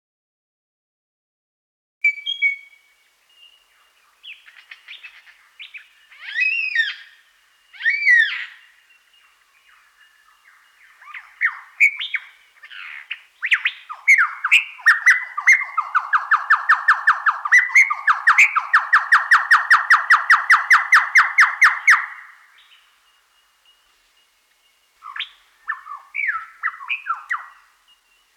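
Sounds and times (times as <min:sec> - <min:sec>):
superb lyrebird singing ringing whistles: 0:02.0 - 0:02.8, 0:04.3 - 0:08.6, 0:10.9 - 0:22.3, 0:25.0 - 0:27.7.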